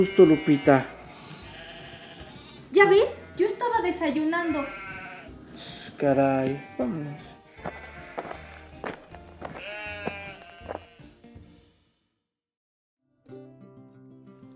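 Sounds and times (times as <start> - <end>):
speech: 0.0 - 1.0, 2.7 - 4.8, 5.6 - 7.8
sheep bleating: 0.0 - 3.7, 4.3 - 11.2.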